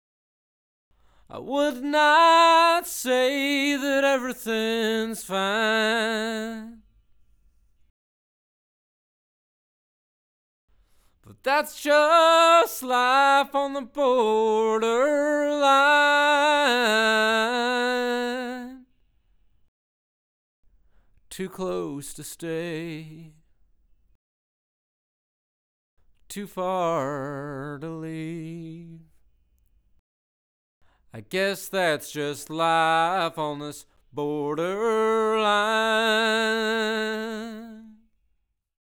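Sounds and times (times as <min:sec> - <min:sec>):
lead vocals: 0:01.0 - 0:06.9, 0:11.2 - 0:18.9, 0:21.3 - 0:23.4, 0:26.3 - 0:29.2, 0:31.1 - 0:38.1.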